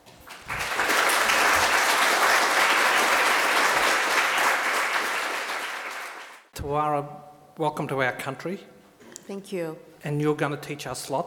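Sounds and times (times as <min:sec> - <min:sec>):
audience applause thanking a panel at a veterinary science faculty event: 0:00.0 - 0:06.5
speech: 0:06.7 - 0:11.2.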